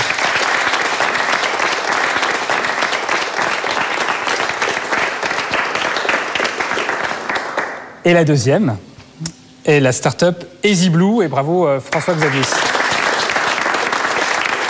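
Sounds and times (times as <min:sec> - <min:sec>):
sustained applause from an audience: 0:00.0 - 0:07.8, 0:11.9 - 0:14.6
speech: 0:08.0 - 0:12.7.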